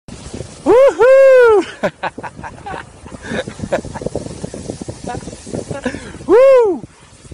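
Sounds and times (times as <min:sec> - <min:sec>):
person shouting woo hoo: 0:00.6 - 0:01.7, 0:06.3 - 0:06.9.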